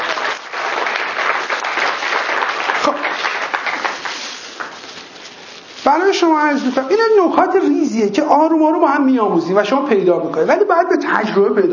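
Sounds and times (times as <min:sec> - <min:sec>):
audience applauding in someone's honour: 0:00.0 - 0:04.9
speech: 0:05.9 - 0:11.7.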